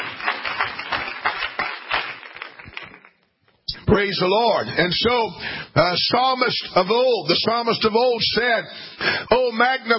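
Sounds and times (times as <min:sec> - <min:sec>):
audience clapping hands: 0:00.0 - 0:03.4
speech: 0:03.9 - 0:09.9.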